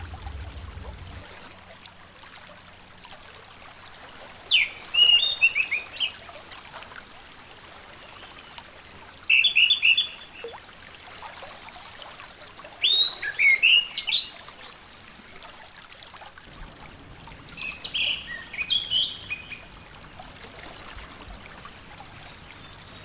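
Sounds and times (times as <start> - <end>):
orange-headed thrush song: 4.0 - 15.6.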